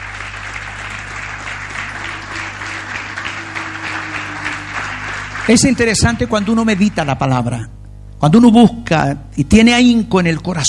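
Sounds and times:
audience applause: 0:00.0 - 0:07.5
faint low hum: 0:00.0 - 0:10.6
speech: 0:05.5 - 0:10.6.

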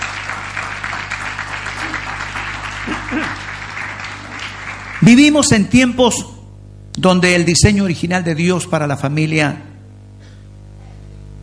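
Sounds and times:
audience applause: 0:00.0 - 0:05.6
speech: 0:05.0 - 0:06.3, 0:07.0 - 0:09.7.

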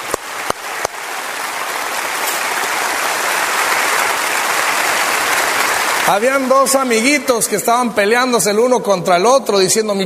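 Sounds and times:
crowd applauding: 0:00.0 - 0:07.7
speech: 0:06.1 - 0:10.0.

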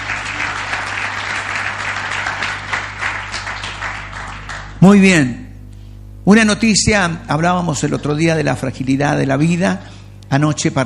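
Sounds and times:
audience applause: 0:00.0 - 0:04.8
speech: 0:04.8 - 0:05.4, 0:06.3 - 0:10.8.

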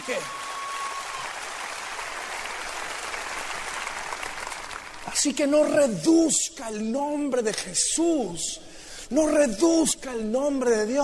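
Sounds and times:
congregation applause during a church sermon: 0:00.0 - 0:05.7
speech: 0:05.1 - 0:11.0.

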